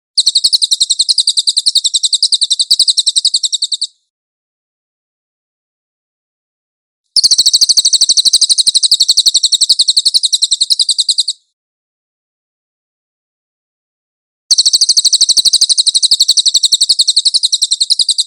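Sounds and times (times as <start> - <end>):
Cililin song trills: 0.2 - 4.1, 7.2 - 11.6, 14.5 - 18.2.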